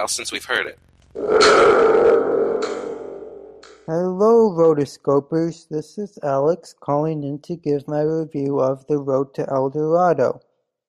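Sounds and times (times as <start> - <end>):
speech: 0.0 - 2.2, 3.9 - 10.5
thunder tube rumbling: 1.2 - 4.5.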